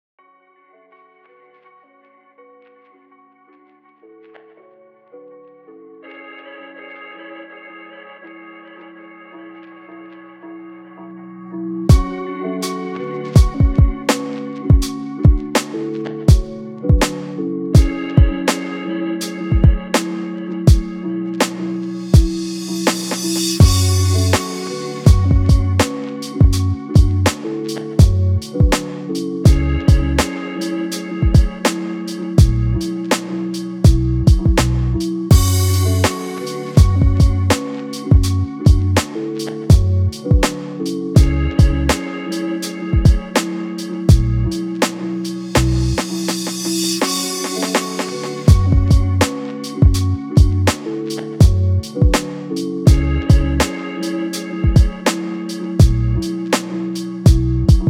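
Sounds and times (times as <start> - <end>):
beats: 11.9 - 18.8, 19.5 - 42.1, 42.9 - 53.8, 54.6 - 57.8.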